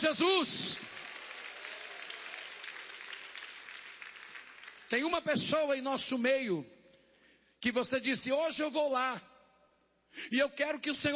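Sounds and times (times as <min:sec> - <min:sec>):
speech: 0:00.0 - 0:00.9, 0:04.9 - 0:06.8, 0:07.6 - 0:09.3, 0:10.1 - 0:11.1
audience clapping: 0:00.0 - 0:05.3.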